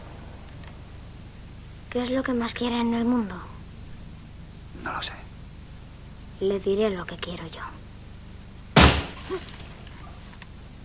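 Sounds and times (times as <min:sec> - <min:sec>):
speech: 0:02.0 - 0:03.5, 0:04.8 - 0:05.2, 0:06.4 - 0:07.9, 0:09.3 - 0:09.6
glass breaking at a door: 0:08.8 - 0:09.9.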